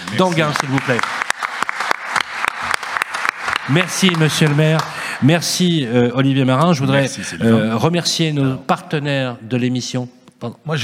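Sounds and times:
applause: 0.0s - 5.3s
speech: 0.1s - 1.1s, 3.7s - 10.8s.

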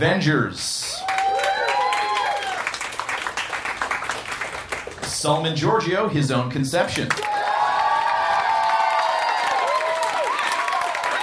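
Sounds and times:
speech: 0.0s - 0.8s, 5.2s - 7.4s
audience applause: 0.9s - 5.1s, 7.1s - 11.2s.

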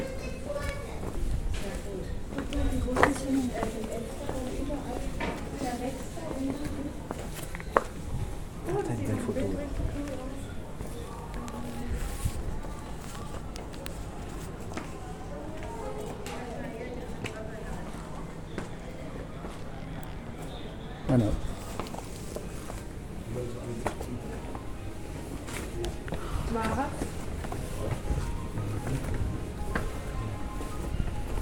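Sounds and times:
voices talking in a busy murmur in Cadaqués: 0.0s - 31.4s.

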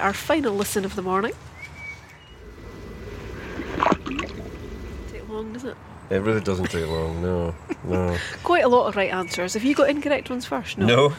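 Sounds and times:
speech: 0.0s - 1.5s, 5.4s - 11.1s
water vole plopping into a burn: 2.4s - 5.4s.

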